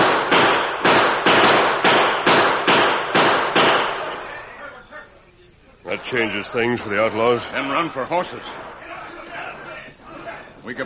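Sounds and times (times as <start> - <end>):
gunshots: 0.0 - 4.4
speech: 6.0 - 8.6, 10.6 - 10.8.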